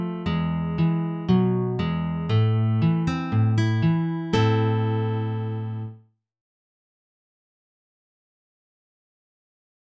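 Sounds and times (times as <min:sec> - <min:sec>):
folk tune picked on guitar: 0:00.0 - 0:06.0.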